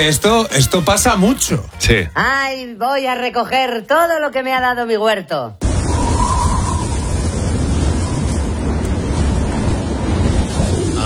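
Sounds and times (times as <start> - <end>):
speech: 0.0 - 5.6
steady dense roar of gusting wind in a storm: 5.6 - 11.0.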